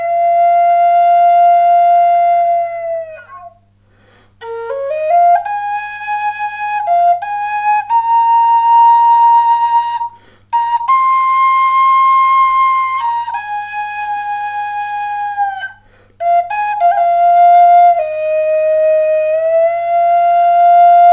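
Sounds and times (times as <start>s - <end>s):
Native American bamboo flute in B flat: 0.0s - 3.7s, 4.4s - 21.1s.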